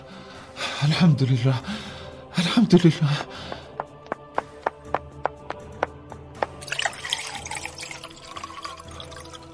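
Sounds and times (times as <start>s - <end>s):
speech: 0.8s - 1.8s, 2.6s - 3.3s
sharp water drips: 5.8s - 9.5s
water pouring into a glass: 6.6s - 9.5s.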